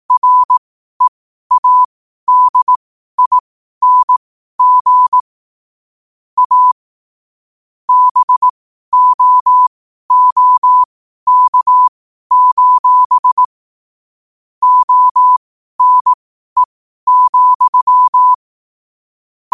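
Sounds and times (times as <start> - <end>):
morse code at 5 wpm: 0.2 - 5.2, 6.4 - 6.8, 7.9 - 13.5, 14.6 - 18.4.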